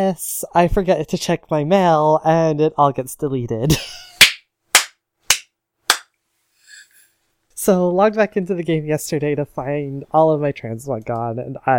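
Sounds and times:
speech: 0.0 - 4.0, 7.6 - 11.7
sarcastic hand clap: 4.2 - 6.1.

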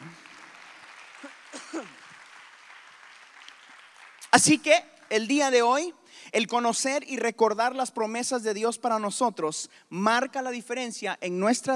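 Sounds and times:
audience applauding: 0.0 - 5.2
speech: 4.4 - 11.7.

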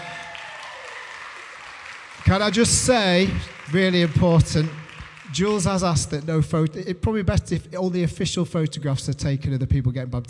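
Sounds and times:
round of applause: 0.0 - 6.2
speech: 2.2 - 10.2.

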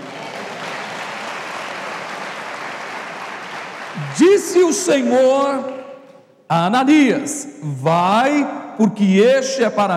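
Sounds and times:
applause: 0.0 - 4.6
speech: 4.0 - 5.8, 6.5 - 9.9.

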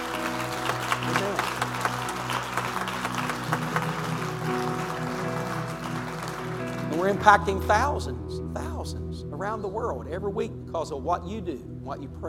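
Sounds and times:
audience clapping: 0.0 - 7.5
speech: 7.1 - 12.2.

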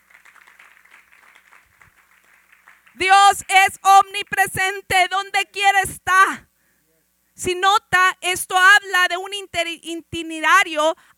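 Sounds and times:
audience applause: 0.0 - 3.5
speech: 3.0 - 6.5, 7.4 - 11.1.

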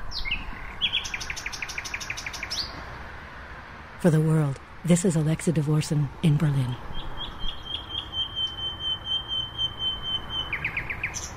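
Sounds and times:
nightingale singing: 0.0 - 2.8, 6.7 - 11.3
speech: 4.0 - 6.9.

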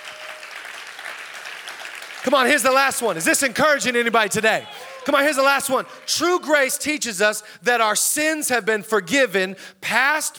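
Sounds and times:
audience applauding: 0.0 - 6.5
speech: 2.2 - 10.3.

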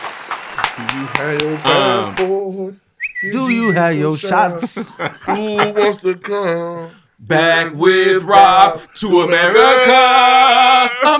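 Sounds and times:
round of applause: 0.0 - 2.3
speech: 0.8 - 11.1
laughter: 3.5 - 6.9, 8.7 - 11.1.

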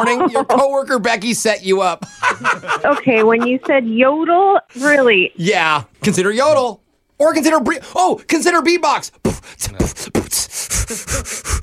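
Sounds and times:
laughter: 0.0 - 1.0, 2.0 - 4.0
speech: 0.0 - 11.6
person breathing heavily: 9.2 - 11.6.

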